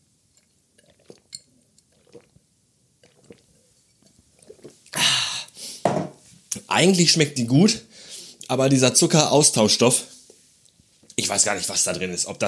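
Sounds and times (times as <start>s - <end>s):
glass clinking: 0.4s - 1.6s
someone slurping diet lemonade from a glass: 0.4s - 5.8s
speech: 6.8s - 7.9s, 8.5s - 10.1s, 11.3s - 12.4s.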